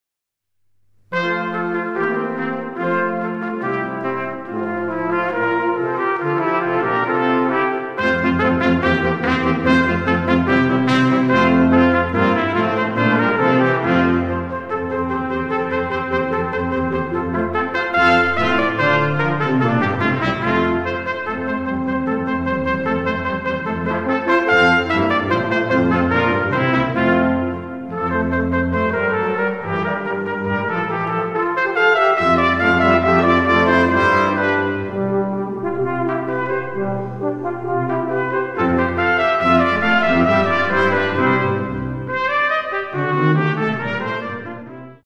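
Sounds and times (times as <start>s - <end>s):
wind ensemble playing a symphony allegro in F major: 1.1s - 45.0s.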